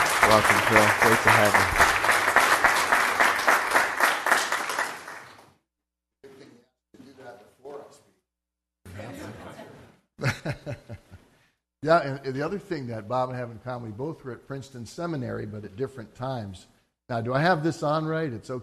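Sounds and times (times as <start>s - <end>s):
audience clapping in welcome: 0.0s - 5.5s
laughter: 0.2s - 1.7s, 8.9s - 11.2s
speech: 0.3s - 1.9s, 11.9s - 18.6s.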